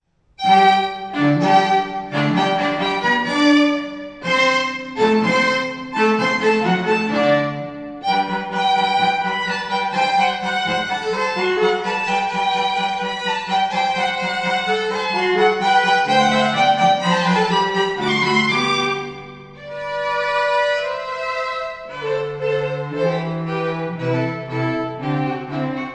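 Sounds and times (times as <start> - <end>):
strings: 0.4 - 25.9.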